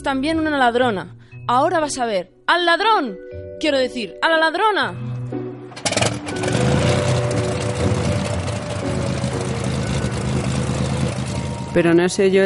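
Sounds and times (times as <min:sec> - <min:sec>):
speech: 0:00.0 - 0:05.1, 0:11.8 - 0:12.4
airplane engine starting up: 0:05.7 - 0:11.8.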